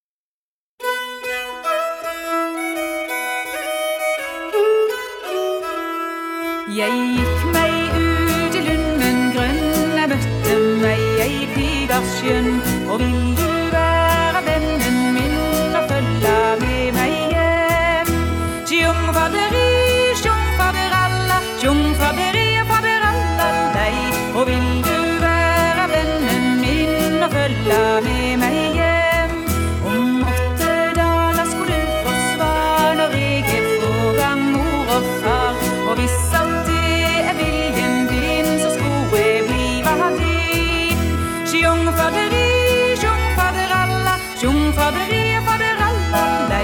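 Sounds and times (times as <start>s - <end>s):
reinlender folk dance music: 0.8s - 46.6s.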